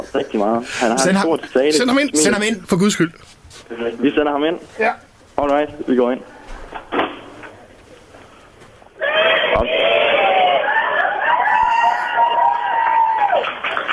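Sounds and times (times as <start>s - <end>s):
speech: 0.1s - 7.0s
crowd shouting and cheering as speakers enter: 9.0s - 13.6s.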